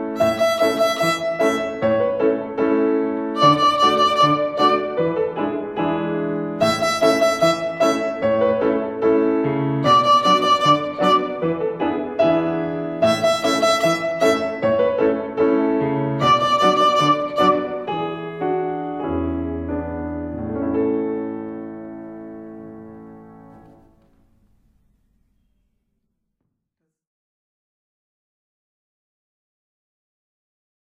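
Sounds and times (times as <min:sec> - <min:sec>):
violin rhythm: 0:00.1 - 0:22.3.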